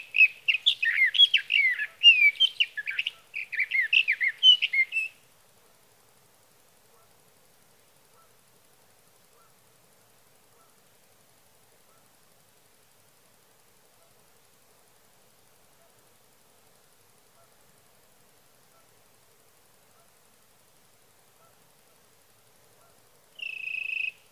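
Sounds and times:
sage thrasher: 0:00.0 - 0:05.2, 0:23.4 - 0:24.3.

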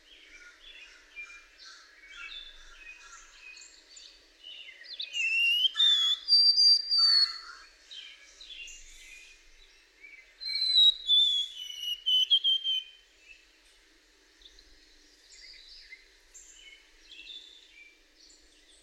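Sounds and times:
White-throated sparrow whistled song: 0:04.9 - 0:07.6, 0:10.4 - 0:13.0.

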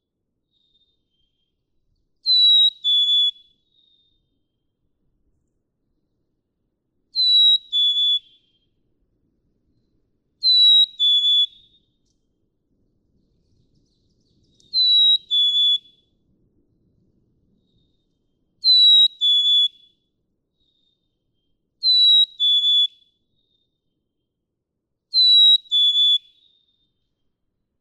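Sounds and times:
pitch-shifted black-capped chickadee call retaining melody: 0:02.3 - 0:03.4, 0:07.2 - 0:08.4, 0:10.5 - 0:11.6, 0:14.8 - 0:15.9, 0:18.7 - 0:19.8, 0:21.8 - 0:23.0, 0:25.2 - 0:26.4.

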